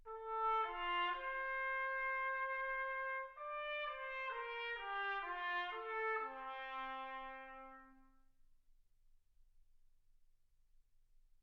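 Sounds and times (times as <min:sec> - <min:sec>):
trumpet: 0:00.0 - 0:08.3.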